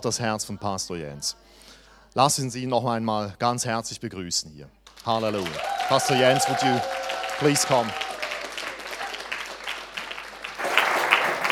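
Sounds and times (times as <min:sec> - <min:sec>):
speech: 0:00.0 - 0:08.1
audience applause: 0:04.9 - 0:11.5.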